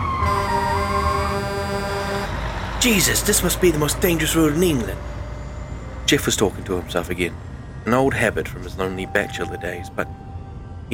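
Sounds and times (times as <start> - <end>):
truck horn sounding loudly: 0.1 - 2.5
speech: 2.8 - 5.1, 6.1 - 10.2.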